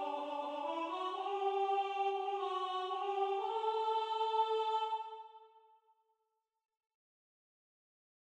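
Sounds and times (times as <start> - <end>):
soprano singing: 0.0 - 5.5.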